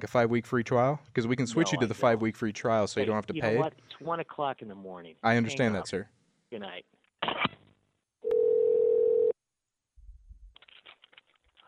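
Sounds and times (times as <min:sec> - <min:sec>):
speech: 0:00.0 - 0:07.6
telephone dial tone after hang-up: 0:08.2 - 0:09.4.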